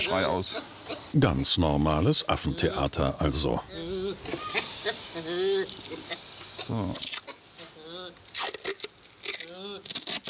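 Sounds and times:
speech: 0.0s - 7.1s
adhesive tape ripping off the roll: 4.3s - 7.3s, 8.1s - 10.2s.

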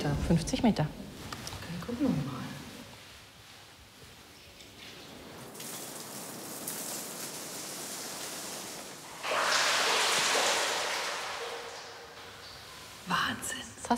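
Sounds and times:
speech: 0.3s - 1.0s, 1.9s - 2.5s
water poured down a 50-metre well shaft: 4.5s - 13.9s.

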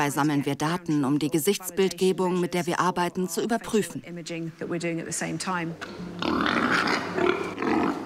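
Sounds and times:
speech: 0.0s - 6.6s
pigs squealing at feed: 6.2s - 8.0s.

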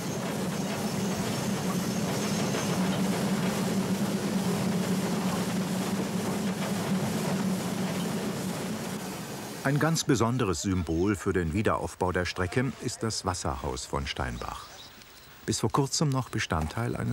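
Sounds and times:
steam locomotive running: 0.0s - 11.2s
speech: 9.7s - 14.7s, 15.4s - 17.1s.

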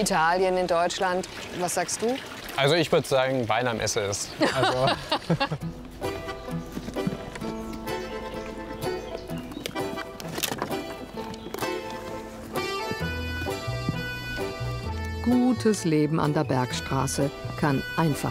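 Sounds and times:
speech: 0.0s - 6.1s, 15.3s - 18.2s
laughter: 4.3s - 5.8s
donkey hooves clip-clopping: 5.2s - 16.0s.

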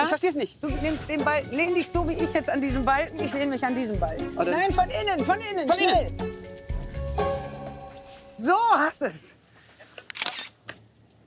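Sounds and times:
speech: 0.1s - 6.6s, 8.4s - 9.4s
camera shutter clicking as a photo is taken: 10.1s - 10.6s.

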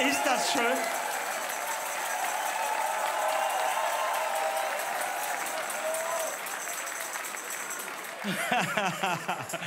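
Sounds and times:
audience applause: 0.0s - 9.6s
laughter: 8.2s - 9.6s.

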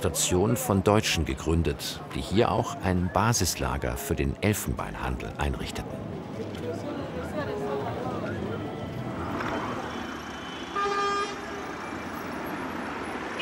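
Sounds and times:
speech: 0.0s - 6.8s
busy city traffic engine noise: 0.0s - 13.4s
street chatter: 0.0s - 13.4s
car horn honking: 10.4s - 11.7s.

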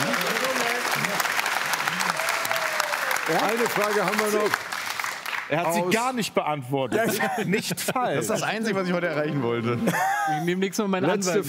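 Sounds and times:
audience applause: 0.0s - 5.9s
speech: 3.3s - 4.7s, 5.5s - 11.4s
laughter: 6.9s - 8.6s, 9.6s - 10.6s.

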